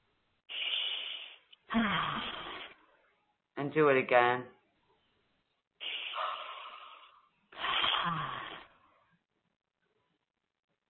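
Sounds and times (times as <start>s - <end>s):
deep breath: 0.5s - 2.8s, 5.8s - 9.2s
speech: 1.7s - 2.4s, 3.6s - 4.6s.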